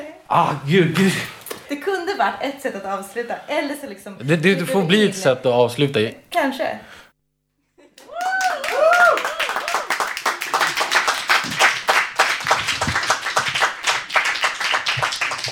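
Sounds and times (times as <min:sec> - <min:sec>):
speech: 0:00.3 - 0:01.4, 0:02.2 - 0:07.0
audience applause: 0:08.0 - 0:15.5.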